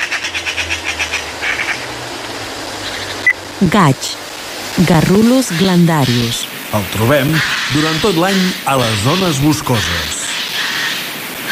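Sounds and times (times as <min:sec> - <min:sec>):
Eurasian magpie Pica pica call: 0:00.0 - 0:01.9, 0:05.1 - 0:06.5, 0:07.2 - 0:11.5
speech: 0:03.6 - 0:04.2, 0:04.8 - 0:10.2.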